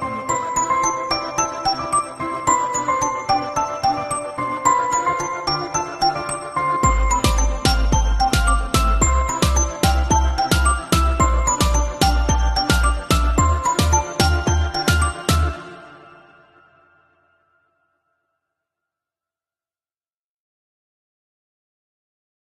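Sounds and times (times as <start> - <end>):
mobile phone ringtone: 0.1 - 16.0.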